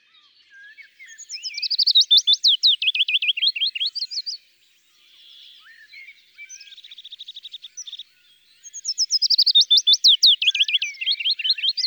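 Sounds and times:
willow warbler song: 0.0s - 11.8s.

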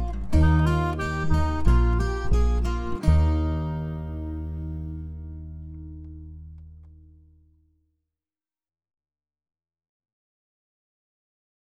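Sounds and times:
instrumental music: 0.0s - 7.4s.

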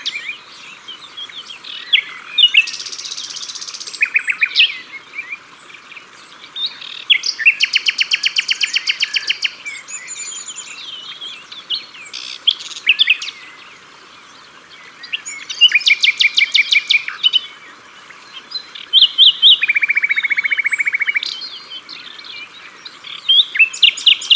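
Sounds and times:
common nightingale song: 0.0s - 24.3s
other birds singing: 0.0s - 24.3s.

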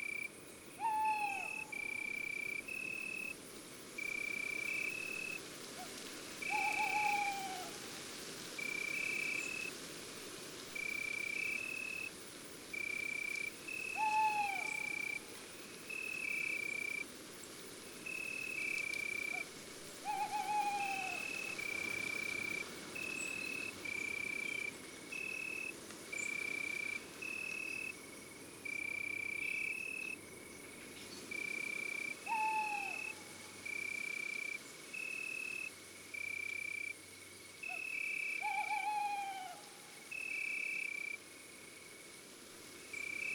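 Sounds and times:
insects trilling: 0.0s - 43.3s
tawny owl hooting: 0.8s - 2.0s, 6.5s - 7.7s, 14.0s - 15.0s, 20.0s - 21.6s, 32.3s - 33.3s, 37.7s - 39.7s.

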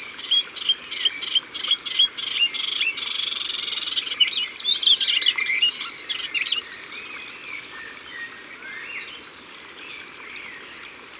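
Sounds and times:
melodious warbler chattering song: 0.0s - 6.6s.

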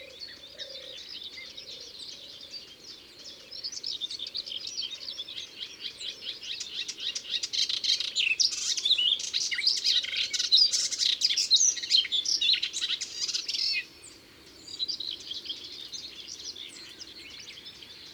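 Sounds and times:
melodious warbler babbling song: 0.0s - 18.1s.

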